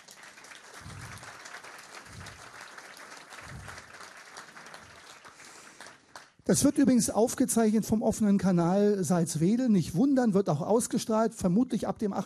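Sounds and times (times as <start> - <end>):
audience applause for the guest: 0.0 - 6.4
speech: 6.5 - 12.2.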